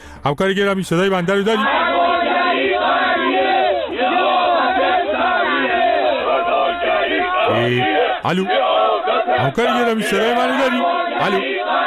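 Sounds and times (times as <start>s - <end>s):
speech: 0.2s - 1.8s, 7.5s - 8.7s, 9.3s - 11.8s
large crowd of demonstrators shouting: 1.4s - 11.8s.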